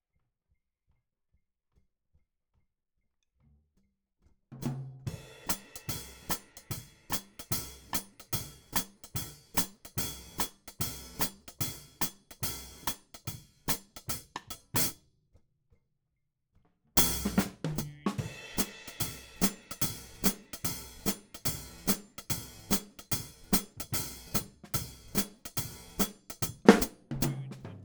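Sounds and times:
hi-hat: 0:05.4 - 0:14.9, 0:17.0 - 0:27.6.

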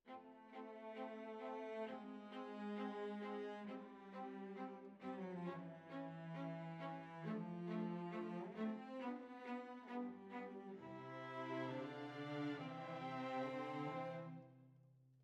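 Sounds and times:
violas: 0:00.2 - 0:14.4.

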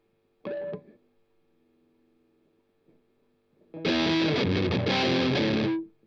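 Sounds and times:
strummed octaves: 0:03.8 - 0:05.9.

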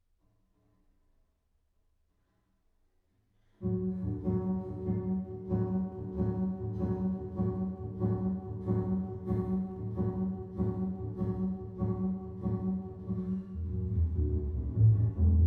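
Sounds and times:
bass: 0:03.6 - 0:15.4.

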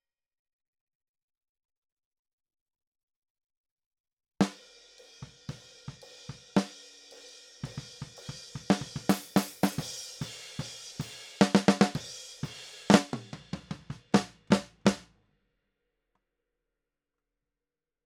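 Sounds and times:
snare drum: 0:06.3 - 0:06.8, 0:07.6 - 0:15.0.

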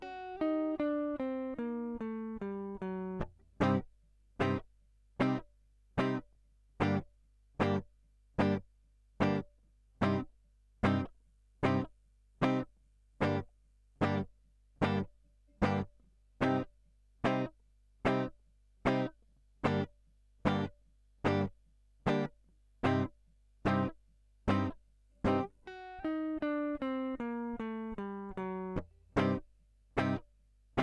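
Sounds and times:
guitar line: 0:00.0 - 0:04.6, 0:05.2 - 0:05.4, 0:06.0 - 0:06.2, 0:06.8 - 0:07.8, 0:08.4 - 0:08.6, 0:09.2 - 0:12.6, 0:13.2 - 0:13.4, 0:14.0 - 0:16.7, 0:17.3 - 0:17.5, 0:18.1 - 0:18.3, 0:18.9 - 0:19.9, 0:20.5 - 0:20.7, 0:21.3 - 0:21.5, 0:22.1 - 0:23.1, 0:23.7 - 0:23.9, 0:24.5 - 0:30.2.

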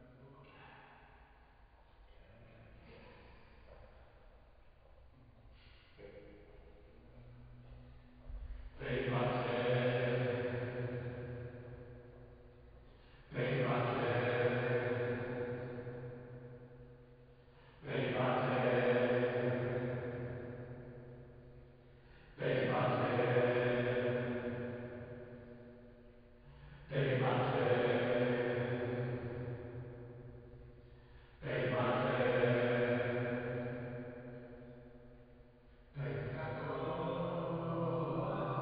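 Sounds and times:
choir singing: 0:08.8 - 0:12.0, 0:13.3 - 0:16.6, 0:17.8 - 0:21.2, 0:22.2 - 0:25.6, 0:26.8 - 0:30.3, 0:31.4 - 0:34.8, 0:36.0 - 0:38.6.

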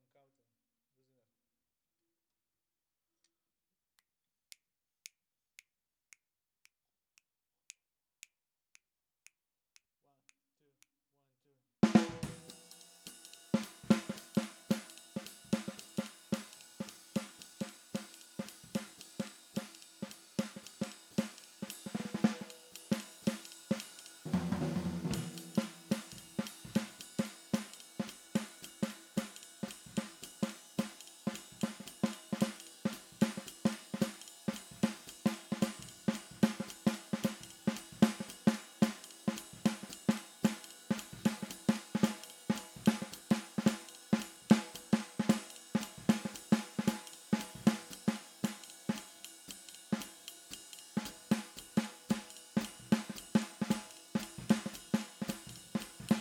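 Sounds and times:
snare drum: 0:11.8 - 0:56.1.

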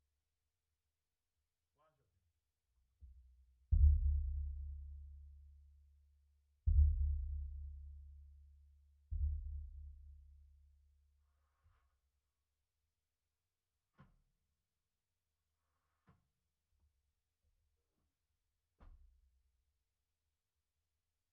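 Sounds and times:
sub bass: 0:03.7 - 0:05.3, 0:06.7 - 0:08.2.

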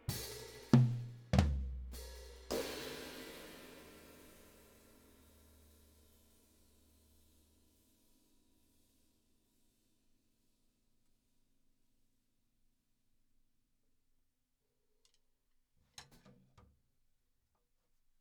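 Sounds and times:
drums: 0:00.0 - 0:08.0.

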